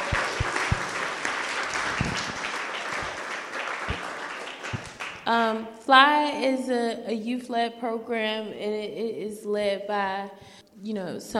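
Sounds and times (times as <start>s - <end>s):
crowd applause: 0.0s - 5.3s
speech: 5.3s - 11.3s.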